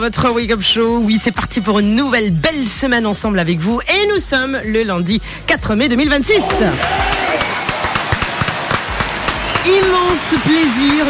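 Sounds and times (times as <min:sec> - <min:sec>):
speech: 0:00.0 - 0:07.2, 0:09.8 - 0:11.0
sharp, regularly spaced claps: 0:06.4 - 0:11.0
standing ovation applause opening a morning radio show: 0:06.4 - 0:11.0.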